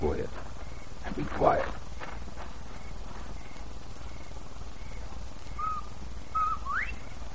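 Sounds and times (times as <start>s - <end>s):
low rumble: 0.0s - 7.3s
person whistling a bobwhite quail call: 5.6s - 7.0s.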